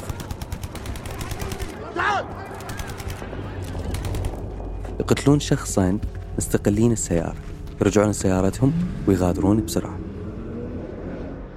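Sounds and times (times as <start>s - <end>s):
Kalashnikov rifle gunfire bursts: 0.0s - 1.8s, 2.5s - 4.4s
low rumble: 3.2s - 11.5s
speech: 5.1s - 10.0s.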